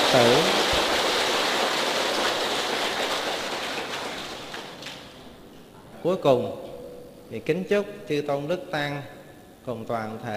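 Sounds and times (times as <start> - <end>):
audience applause: 0.0 - 5.2
speech: 0.1 - 0.6, 6.0 - 6.6, 7.3 - 10.3.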